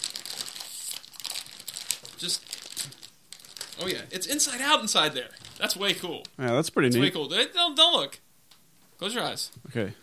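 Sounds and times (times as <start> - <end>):
thin wrapping crinkling as a package is torn open: 0.0 - 6.6
speech: 2.2 - 3.0, 3.8 - 8.2, 9.0 - 10.0.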